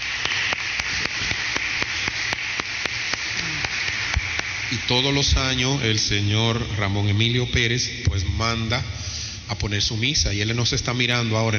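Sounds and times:
crowd applauding: 0.0s - 5.5s
speech: 4.9s - 11.5s.

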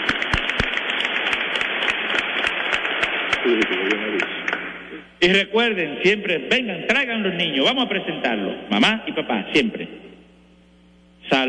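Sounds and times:
audience applauding: 0.0s - 4.6s
speech: 3.4s - 4.4s, 5.2s - 10.0s, 11.3s - 11.4s.

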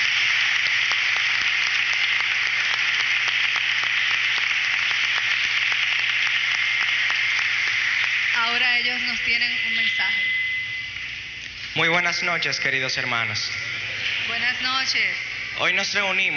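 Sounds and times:
audience applause: 0.0s - 9.8s, 13.2s - 16.3s
speech: 9.2s - 10.4s, 11.8s - 13.6s, 14.3s - 16.3s.

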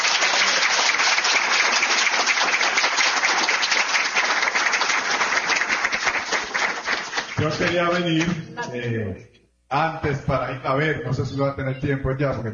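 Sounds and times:
audience applause: 0.0s - 8.4s
speech: 7.4s - 12.5s.

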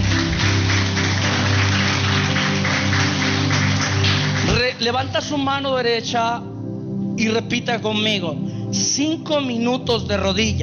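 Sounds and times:
audience applauding: 0.0s - 5.0s
speech: 4.8s - 6.5s, 7.2s - 10.6s.

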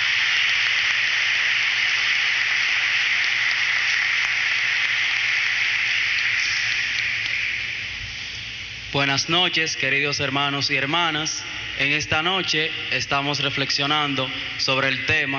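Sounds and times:
loud applause from a large crowd: 0.0s - 7.8s
speech: 9.0s - 15.3s.

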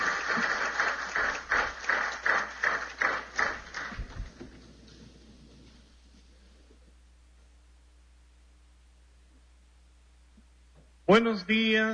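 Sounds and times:
audience applause: 0.0s - 5.1s
speech: 11.1s - 11.9s.

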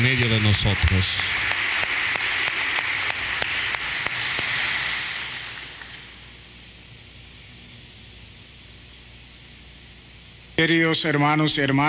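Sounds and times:
audience applause: 0.0s - 6.2s
speech: 0.4s - 1.5s, 10.6s - 11.8s.

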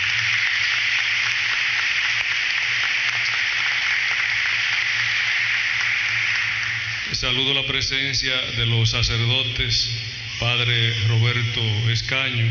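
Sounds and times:
audience applause: 0.0s - 7.7s
speech: 7.2s - 12.4s.

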